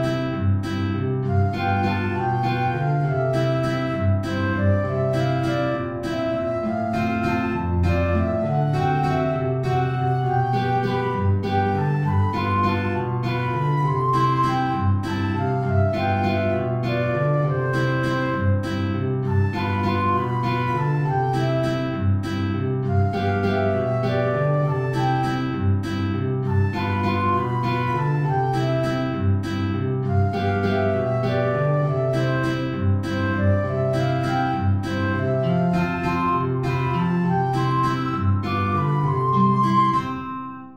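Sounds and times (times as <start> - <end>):
guitar playing in C major: 0.0 - 40.6
transverse flute playing in C major: 0.0 - 40.6.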